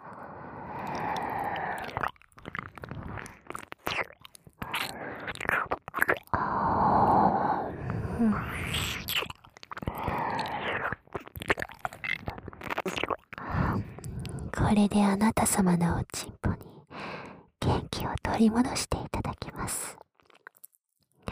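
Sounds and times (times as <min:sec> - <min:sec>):
breathy whispering: 0:00.0 - 0:02.1, 0:04.6 - 0:05.7, 0:06.3 - 0:11.0, 0:12.1 - 0:20.0
wet ASMR ear licking close to the microphone: 0:00.8 - 0:06.4, 0:08.3 - 0:14.5
speech: 0:14.7 - 0:16.3, 0:18.4 - 0:19.0.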